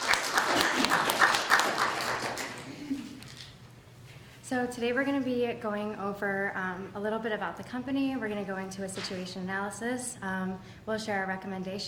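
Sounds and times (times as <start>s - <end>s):
audience applause: 0.0s - 3.2s
speech: 4.5s - 11.8s.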